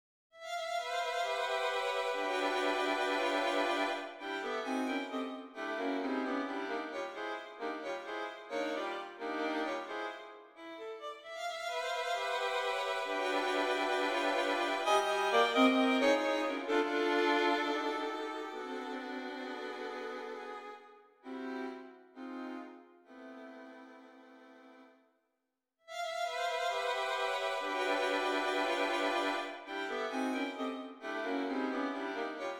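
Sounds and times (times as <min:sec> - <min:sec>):
four violins playing a concertante: 0:00.8 - 0:22.6, 0:26.0 - 0:32.5.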